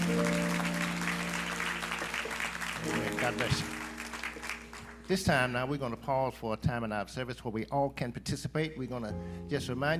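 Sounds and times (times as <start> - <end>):
sustained organ chord: 0.0 - 5.0
audience applauding: 0.0 - 5.6
speech: 2.8 - 3.8, 5.1 - 9.9.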